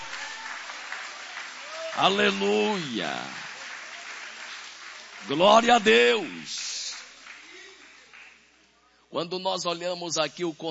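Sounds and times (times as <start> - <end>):
audience applause: 0.0 - 8.5
speech: 2.0 - 3.4, 5.2 - 6.7, 9.1 - 10.6.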